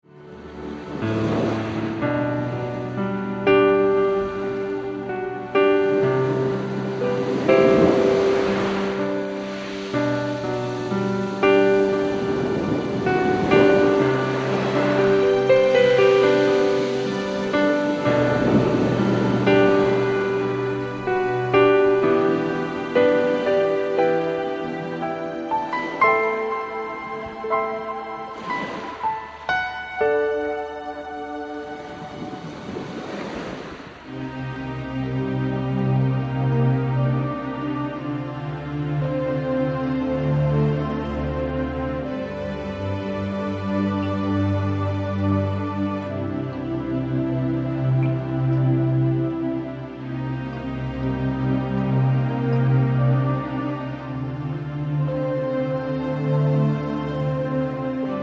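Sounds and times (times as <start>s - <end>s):
relaxation music: 0.0s - 58.2s.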